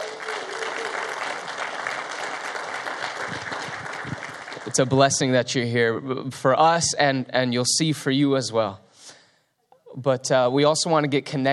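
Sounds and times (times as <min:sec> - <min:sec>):
audience applause: 0:00.0 - 0:05.0
speech: 0:04.8 - 0:08.8, 0:10.0 - 0:11.5.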